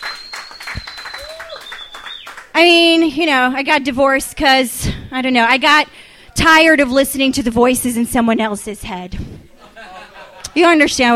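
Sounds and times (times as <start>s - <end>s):
faint whistle-like tone: 0.0s - 2.4s
audience applause: 0.0s - 2.5s
speech: 2.6s - 9.3s, 10.6s - 11.1s
laughter: 9.5s - 10.8s.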